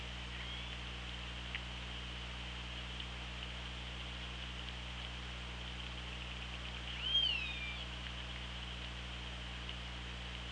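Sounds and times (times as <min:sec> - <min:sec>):
underwater hiss and low hum: 0:00.0 - 0:10.5
killer whale whistle: 0:00.3 - 0:00.8, 0:06.9 - 0:07.9.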